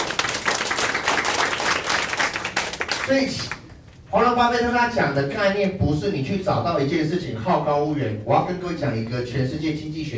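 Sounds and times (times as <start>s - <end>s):
crowd audience applause: 0.0s - 3.1s
speech: 3.1s - 10.1s.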